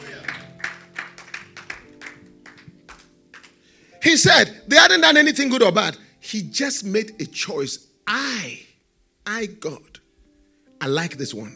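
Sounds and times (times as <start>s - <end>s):
audience clapping in rhythm: 0.0s - 3.7s
speech: 4.0s - 8.7s, 9.3s - 9.9s, 10.8s - 11.5s.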